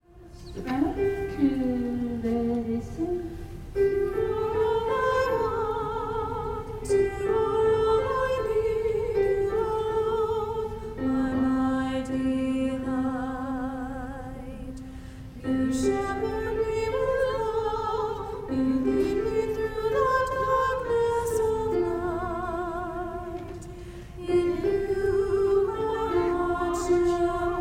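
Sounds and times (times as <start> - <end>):
soprano singing: 0.0 - 27.5.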